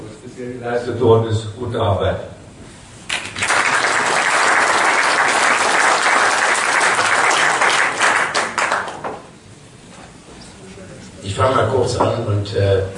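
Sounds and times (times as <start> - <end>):
speech: 0.4 - 2.3, 11.4 - 12.9
crowd applause: 3.1 - 9.3.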